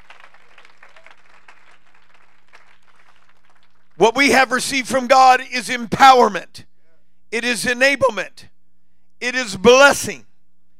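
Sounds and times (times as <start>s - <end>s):
audience clapping hands: 0.0s - 4.3s
speech: 4.0s - 6.7s, 7.3s - 8.5s, 9.2s - 10.3s.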